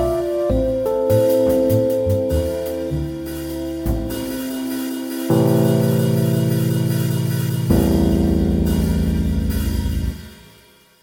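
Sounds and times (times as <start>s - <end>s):
cool blues piano: 0.0s - 10.5s.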